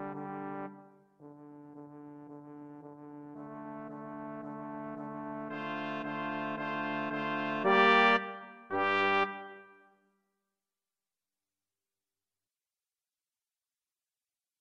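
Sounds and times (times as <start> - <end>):
brass quartet playing: 0.0 - 9.7.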